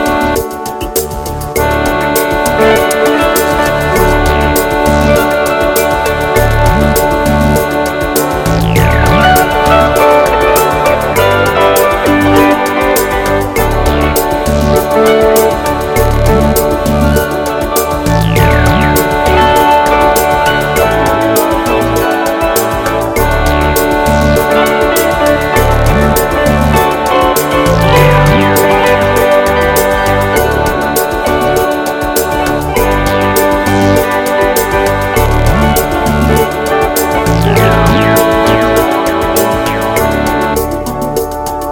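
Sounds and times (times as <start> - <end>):
pop song: 0.0 - 41.6.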